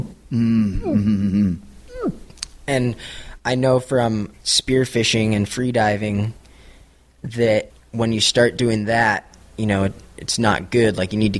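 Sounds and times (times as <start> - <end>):
person imitating involuntary breath-hold contractions while freediving: 0.0 - 2.3
speech: 0.3 - 1.7, 2.7 - 6.4, 7.2 - 11.3.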